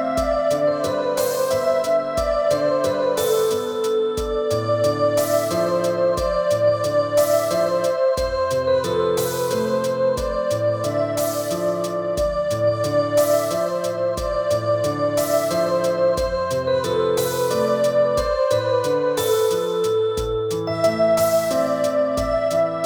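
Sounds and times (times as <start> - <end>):
keyboard: 0.0 - 22.8.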